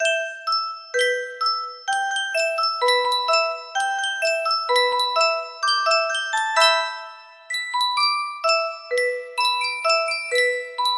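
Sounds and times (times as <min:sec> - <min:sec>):
Yunsheng music box melody: 0:00.0 - 0:10.9.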